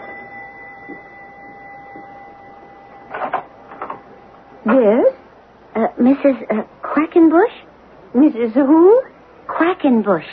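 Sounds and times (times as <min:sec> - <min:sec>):
doorbell ringing: 0:00.0 - 0:04.2
low steady humming tone: 0:00.0 - 0:10.2
speech: 0:04.7 - 0:05.1, 0:06.0 - 0:07.6, 0:08.2 - 0:10.3.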